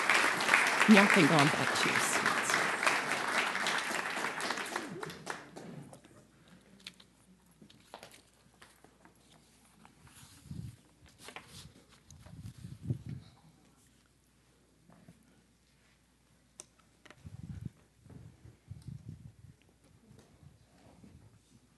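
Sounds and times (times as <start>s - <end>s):
audience applause: 0.0s - 5.7s
speech: 0.9s - 2.3s.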